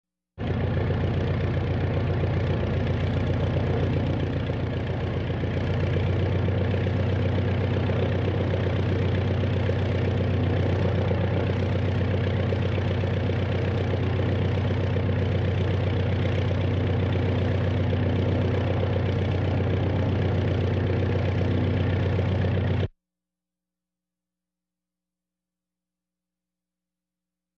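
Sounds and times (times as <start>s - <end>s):
Kukuruznik aircraft engine running evenly heard inside: 0.4s - 22.9s.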